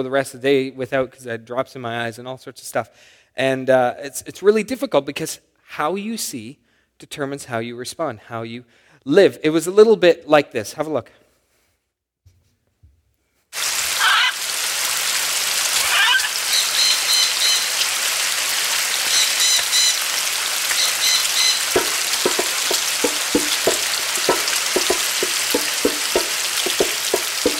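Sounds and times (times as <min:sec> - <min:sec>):
speech: 0:00.0 - 0:11.2
bacon sizzling in a pan: 0:13.6 - 0:27.5
quick taps on a drum: 0:21.6 - 0:27.5.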